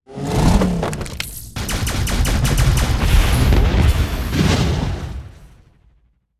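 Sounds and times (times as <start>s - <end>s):
piercing shot: 1.6s - 5.1s.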